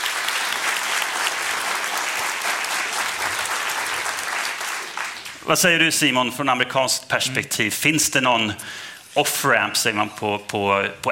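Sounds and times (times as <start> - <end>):
audience applause: 0.0 - 5.5
speech: 5.5 - 11.0.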